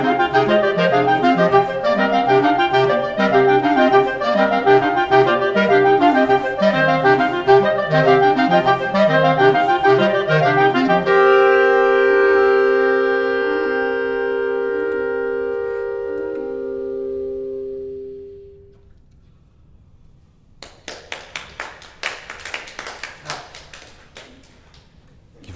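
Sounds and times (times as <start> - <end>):
clarinet: 0.0 - 19.0.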